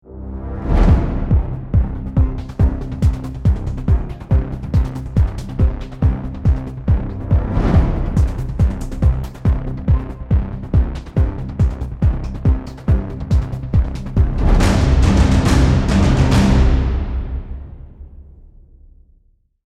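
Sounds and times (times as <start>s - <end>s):
action music: 0.0s - 18.7s.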